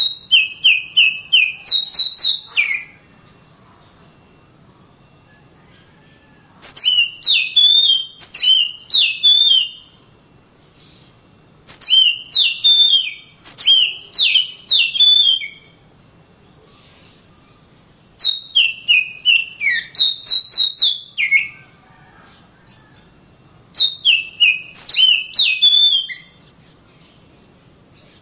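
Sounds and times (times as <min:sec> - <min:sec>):
Oriental magpie-robin singing clear whistled notes: 0:00.0 - 0:03.4, 0:06.6 - 0:09.9, 0:11.7 - 0:15.8, 0:18.2 - 0:21.6, 0:23.8 - 0:26.4.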